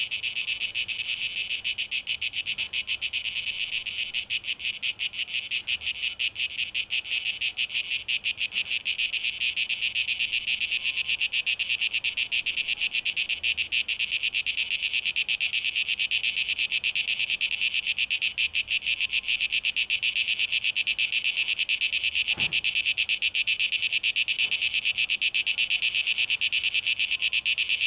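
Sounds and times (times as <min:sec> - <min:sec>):
cicada buzzing: 0:00.0 - 0:27.8
low thud: 0:22.3 - 0:22.8.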